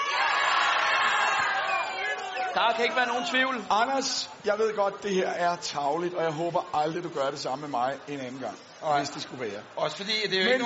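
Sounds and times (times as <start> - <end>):
crowd shouting yes: 0.0 - 3.9
speech: 2.6 - 10.6.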